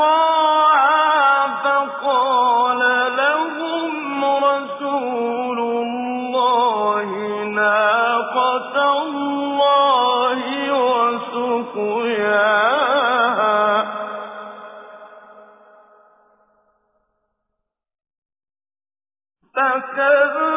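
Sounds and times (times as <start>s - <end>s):
Quranic recitation with tajweed: 0.0s - 15.3s, 19.6s - 20.5s.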